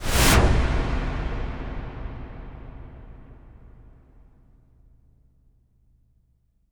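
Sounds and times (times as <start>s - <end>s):
wipe whoosh: 0.0s - 0.9s
cinematic impact: 0.0s - 4.3s.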